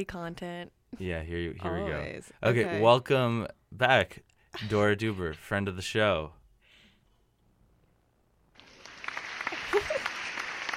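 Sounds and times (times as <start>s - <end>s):
speech: 0.0s - 6.4s
polite clapping: 8.6s - 10.7s.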